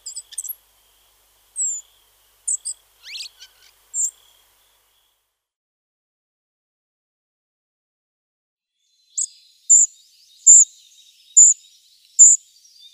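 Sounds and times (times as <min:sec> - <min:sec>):
spotted flycatcher singing: 0:00.0 - 0:00.6, 0:01.6 - 0:05.0, 0:09.1 - 0:12.9.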